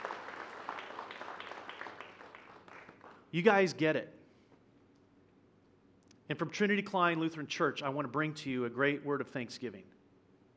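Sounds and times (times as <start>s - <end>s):
audience clapping: 0.0s - 3.3s
speech: 3.3s - 4.2s, 6.3s - 10.0s.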